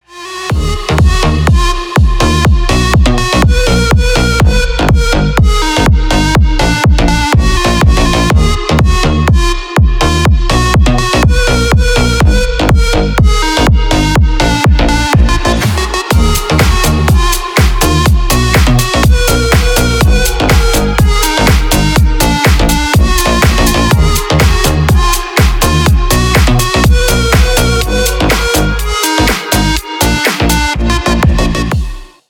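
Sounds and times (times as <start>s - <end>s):
techno music: 0.1s - 32.2s.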